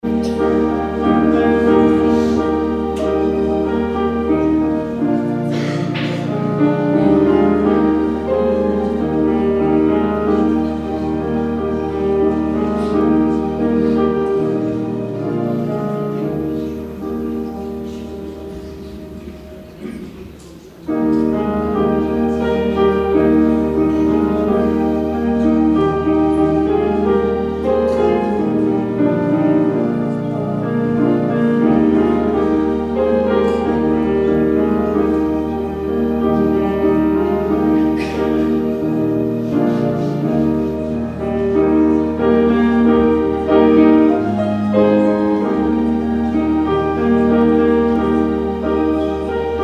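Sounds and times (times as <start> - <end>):
prelude music: 0.0 - 49.6.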